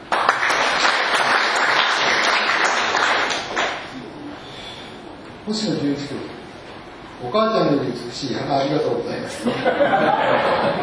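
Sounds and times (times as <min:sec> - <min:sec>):
applause: 0:00.0 - 0:03.9
speech: 0:05.5 - 0:06.4, 0:07.2 - 0:10.8
laughter: 0:09.3 - 0:10.8.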